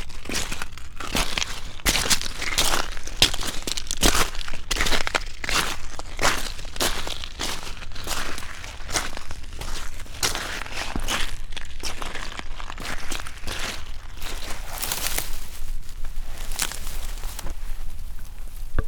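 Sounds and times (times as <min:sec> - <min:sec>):
footsteps on shore at Oxford Island, Lough Neagh: 0:00.5 - 0:18.8.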